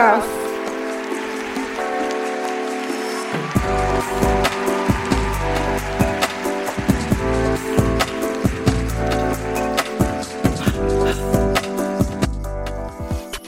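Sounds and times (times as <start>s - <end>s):
audience applause: 0.4s - 12.2s.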